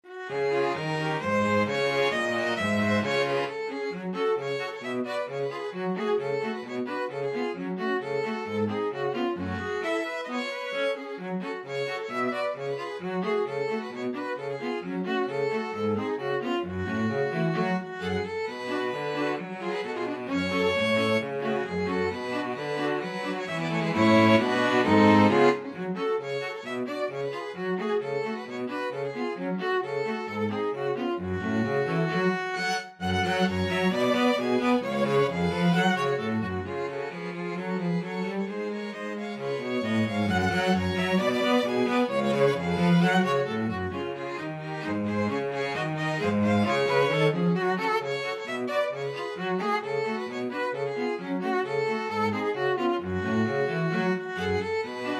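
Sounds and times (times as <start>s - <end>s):
string quartet: 0.0s - 55.1s.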